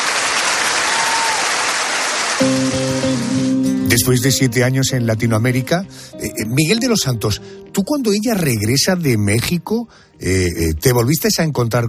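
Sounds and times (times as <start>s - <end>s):
audience applause: 0.0s - 3.5s
speech: 2.4s - 2.8s, 3.9s - 11.8s
sustained musical chord: 2.4s - 9.9s.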